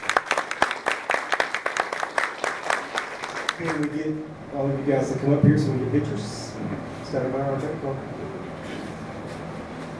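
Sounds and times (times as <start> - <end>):
crowd applauding: 0.0 - 4.1
speech: 3.6 - 8.2.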